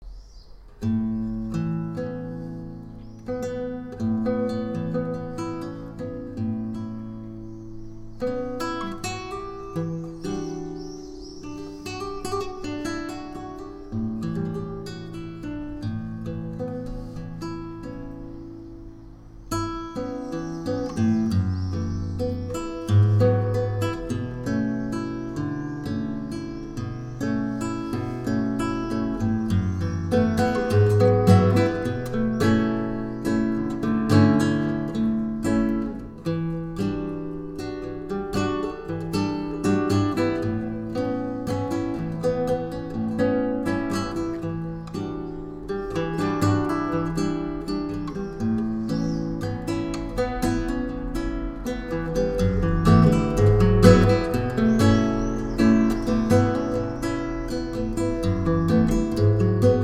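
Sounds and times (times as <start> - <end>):
guitar: 0.0 - 59.8.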